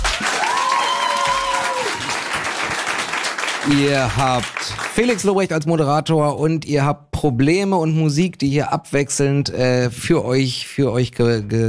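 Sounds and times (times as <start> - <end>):
live audience applauding: 0.0 - 5.5
speech: 3.6 - 11.6.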